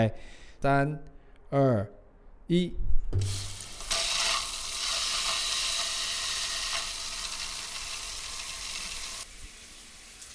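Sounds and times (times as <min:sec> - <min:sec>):
speech: 0:00.0 - 0:03.5
hot water running in shower: 0:03.2 - 0:10.3.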